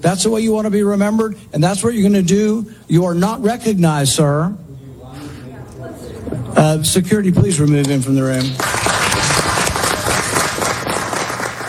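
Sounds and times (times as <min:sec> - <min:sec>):
speech: 0:00.0 - 0:04.6, 0:06.6 - 0:08.8
audience clapping in a hearing room: 0:07.8 - 0:11.6.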